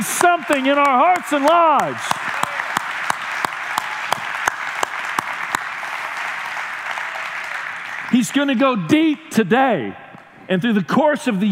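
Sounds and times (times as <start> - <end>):
audience clapping: 0.0 - 8.9
speech: 0.3 - 2.2, 8.1 - 11.4.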